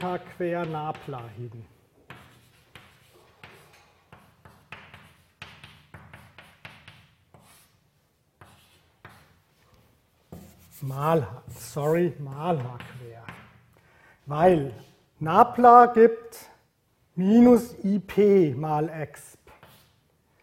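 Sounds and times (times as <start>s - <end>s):
speech: 0.0s - 1.8s, 10.8s - 13.4s, 14.3s - 16.5s, 17.2s - 19.4s
mathematical formula written by hand: 0.0s - 13.6s, 19.5s - 20.1s.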